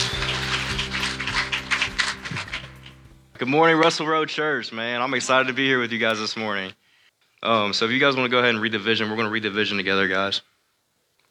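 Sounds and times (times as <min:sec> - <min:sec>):
audience applause: 0:00.0 - 0:03.1
speech: 0:03.4 - 0:06.8, 0:07.4 - 0:10.5.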